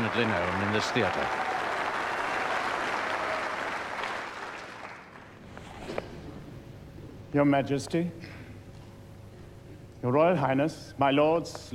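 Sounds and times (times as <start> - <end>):
audience applauding at the National Theatre: 0.0 - 5.4
speech: 0.1 - 1.5, 7.3 - 8.4, 10.0 - 11.7.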